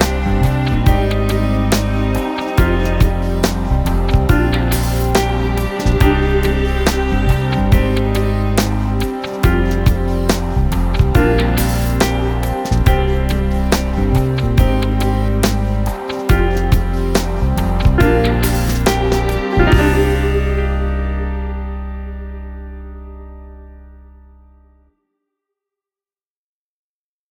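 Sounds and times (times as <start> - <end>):
abstract lounge music: 0.0 - 24.5.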